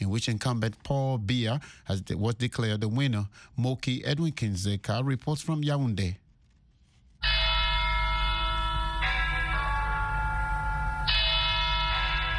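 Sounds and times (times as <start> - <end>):
speech: 0.1 - 6.2
church bells ringing at Our Lady of Victory's Cathedral in Yaoundé: 7.2 - 12.3.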